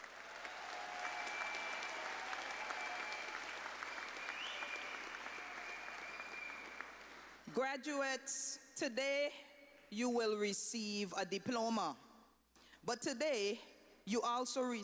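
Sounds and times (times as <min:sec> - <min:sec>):
round of applause: 0:00.0 - 0:07.5
speech: 0:07.6 - 0:12.0, 0:12.8 - 0:14.8.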